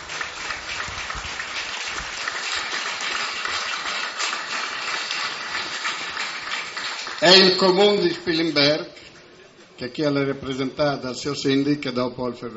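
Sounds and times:
audience applause: 0:00.0 - 0:08.5
speech: 0:07.2 - 0:09.0, 0:09.8 - 0:12.5.

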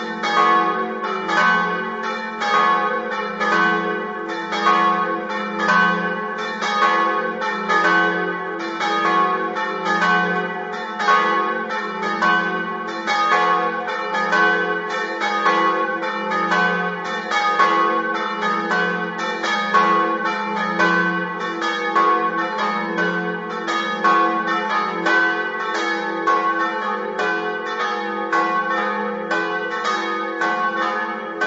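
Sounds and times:
bells: 0:00.0 - 0:31.4.

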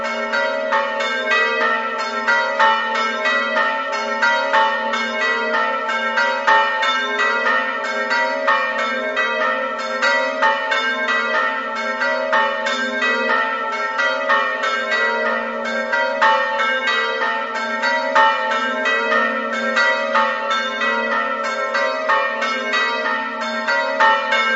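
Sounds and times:
bells ringing: 0:00.0 - 0:24.5.

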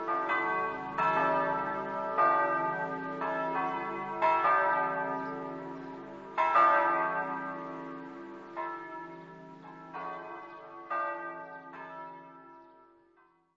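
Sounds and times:
bells: 0:00.0 - 0:13.5.

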